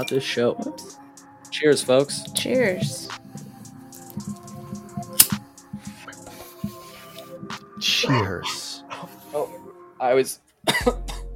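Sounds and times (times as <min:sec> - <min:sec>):
speech: 0:00.0 - 0:03.4, 0:08.0 - 0:08.6, 0:10.0 - 0:11.1
person coughing after hitting a marijuana cartridge: 0:10.6 - 0:11.3.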